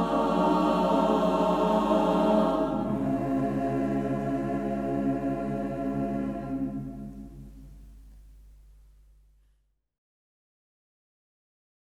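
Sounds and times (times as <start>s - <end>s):
choir singing: 0.0s - 7.5s.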